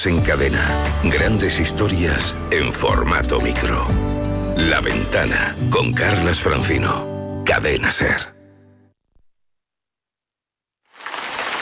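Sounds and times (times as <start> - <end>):
speech: 0.0 - 8.3
rain falling: 10.9 - 11.6.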